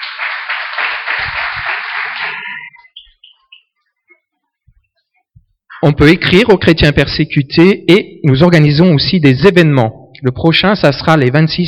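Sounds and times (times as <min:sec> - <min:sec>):
audience applause: 0:00.0 - 0:02.8
speech: 0:05.8 - 0:11.6.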